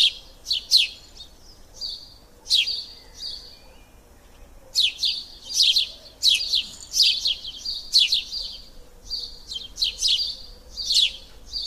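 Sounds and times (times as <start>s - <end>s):
bird chirps: 0.0s - 11.6s.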